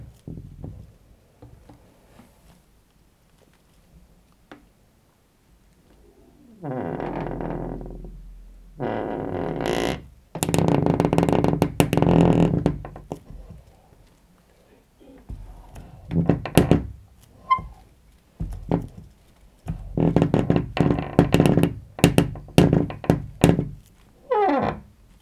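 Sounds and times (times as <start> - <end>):
door squeaking: 6.5 - 8.1, 8.8 - 13.9, 15.0 - 19.0, 19.7 - 24.9.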